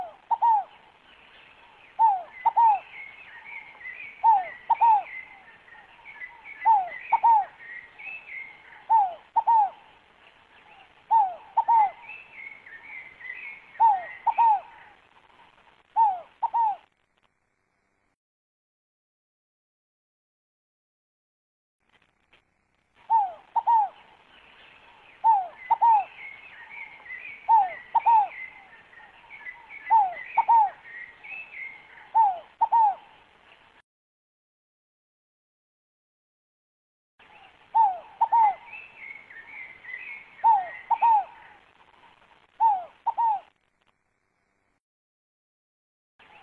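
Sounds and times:
scaled dove cooing: 0:00.0 - 0:00.9, 0:02.0 - 0:10.0, 0:10.7 - 0:15.0, 0:16.0 - 0:16.9, 0:23.0 - 0:24.2, 0:25.2 - 0:33.2, 0:37.5 - 0:41.6, 0:42.6 - 0:43.5
birds chattering and trilling: 0:00.0 - 0:16.9, 0:23.0 - 0:33.7, 0:37.2 - 0:43.6.

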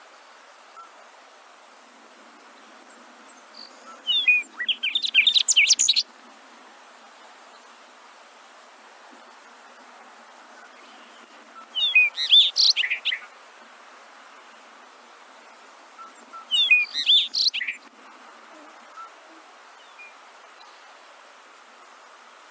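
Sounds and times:
singing: 0:03.3 - 0:06.0, 0:10.6 - 0:13.3, 0:15.9 - 0:17.8.

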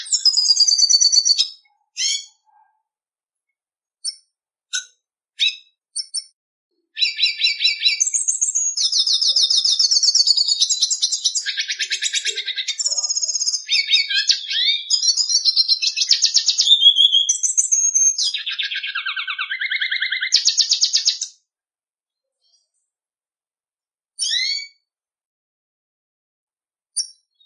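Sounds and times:
red siskin singing with twittering phrases, chirps, trills and buzzy notes: 0:00.0 - 0:02.8, 0:04.0 - 0:06.4, 0:07.0 - 0:21.4, 0:24.2 - 0:24.8.

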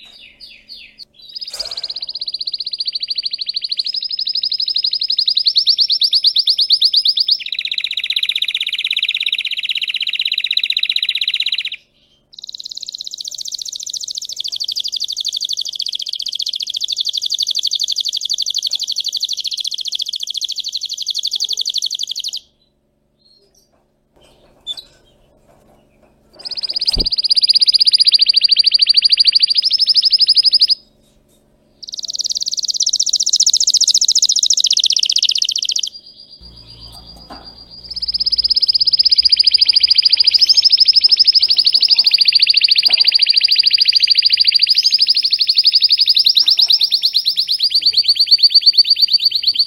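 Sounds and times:
canary trilling: 0:00.0 - 0:22.6, 0:26.3 - 0:30.8, 0:31.8 - 0:49.6.

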